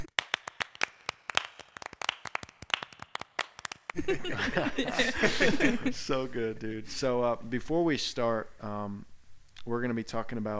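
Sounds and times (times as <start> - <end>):
applause: 0.0 - 5.8
laughter: 4.0 - 7.4
speech: 4.0 - 10.5.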